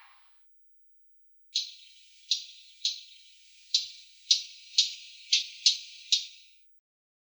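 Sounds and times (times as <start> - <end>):
Siberian rubythroat song: 1.5 - 6.7.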